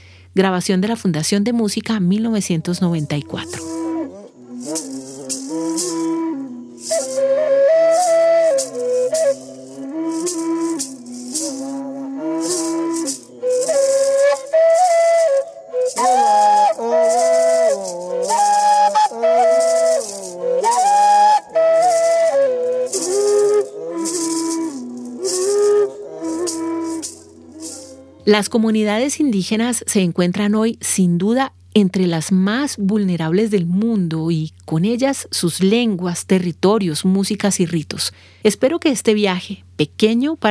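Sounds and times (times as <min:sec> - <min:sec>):
maraca: 0:00.0 - 0:40.4
speech: 0:00.4 - 0:03.8, 0:28.3 - 0:40.4
two reed flutes: 0:02.1 - 0:30.1.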